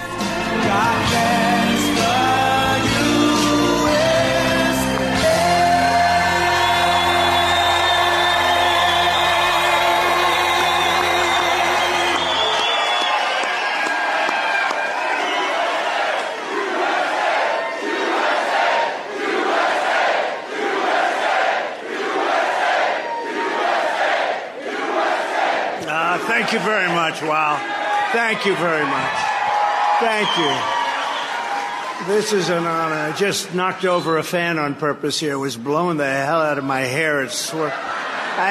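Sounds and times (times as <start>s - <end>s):
rally crowd chanting: 0.0s - 29.4s
rally crowd cheering: 0.0s - 38.4s
speech: 28.1s - 29.2s, 30.0s - 30.7s, 32.0s - 38.4s.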